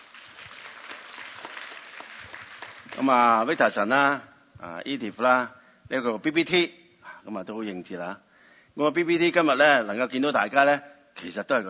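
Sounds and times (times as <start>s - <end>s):
audience applauding at a church gathering: 0.0s - 3.6s
speech: 3.0s - 11.6s.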